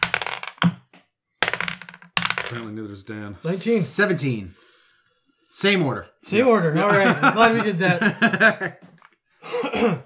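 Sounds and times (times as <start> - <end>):
dice being rolled: 0.0 - 2.6
speech: 2.5 - 4.7, 5.5 - 8.9, 9.8 - 10.0
laughter: 6.6 - 9.0.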